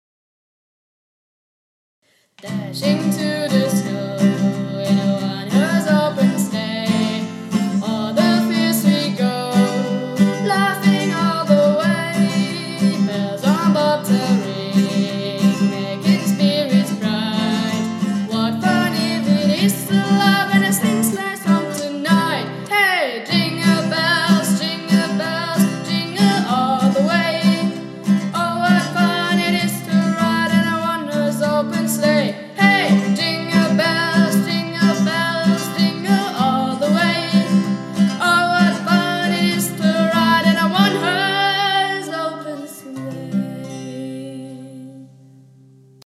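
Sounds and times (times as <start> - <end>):
Christmas song: 2.4 - 45.7.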